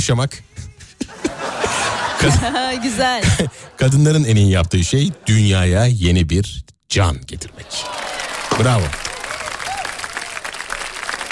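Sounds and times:
speech: 0.0s - 0.8s, 2.2s - 8.0s, 8.6s - 9.0s
laughter: 0.8s - 5.6s
hands clapping: 7.4s - 11.2s.

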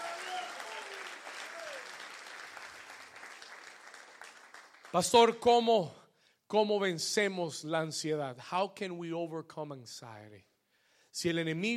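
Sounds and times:
crowd clapping: 0.0s - 5.2s
speech: 4.9s - 10.5s, 11.1s - 11.7s.

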